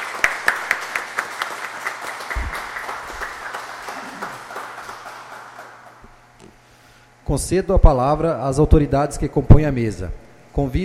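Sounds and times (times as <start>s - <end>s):
audience applause: 0.0s - 6.1s
speech: 7.3s - 10.8s.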